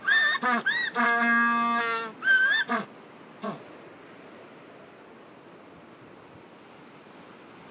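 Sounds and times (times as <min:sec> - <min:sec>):
African penguin calling: 0:00.0 - 0:03.6.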